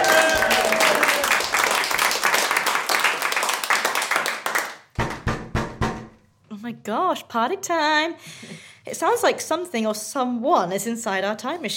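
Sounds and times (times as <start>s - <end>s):
round of applause: 0.0s - 4.9s
speech: 6.9s - 11.7s.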